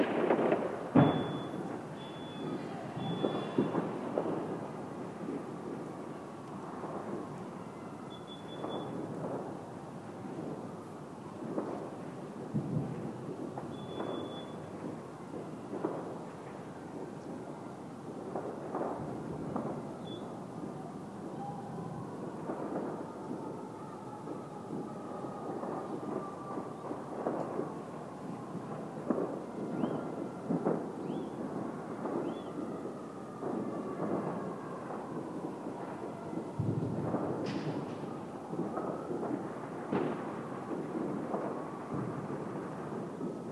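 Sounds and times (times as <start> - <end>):
neighborhood fireworks: 0.0 - 43.5
sirens: 0.0 - 43.5
alarm: 1.0 - 3.9, 8.1 - 9.0, 13.7 - 14.7, 20.0 - 20.4.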